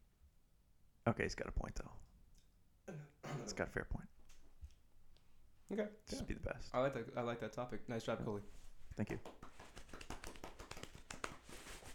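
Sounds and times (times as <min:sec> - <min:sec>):
speech: 0:01.0 - 0:02.1, 0:02.9 - 0:04.2, 0:05.7 - 0:09.5
hands clapping: 0:09.0 - 0:11.9.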